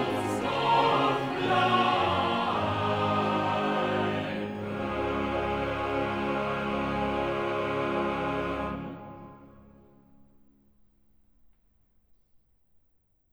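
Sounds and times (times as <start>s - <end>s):
choral cantata: 0.0s - 9.8s.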